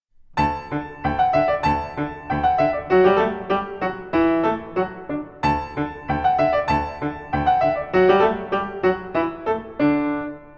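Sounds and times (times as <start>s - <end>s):
musette music: 0.2s - 10.5s.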